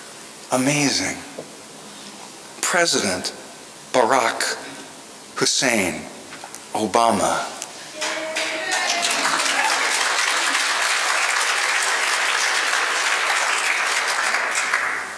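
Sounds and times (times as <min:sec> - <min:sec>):
speech: 0:00.5 - 0:01.5, 0:02.7 - 0:04.6, 0:05.4 - 0:06.1, 0:06.7 - 0:07.5
faint crowd cheers: 0:08.0 - 0:10.8
crowd applauding: 0:08.0 - 0:15.1.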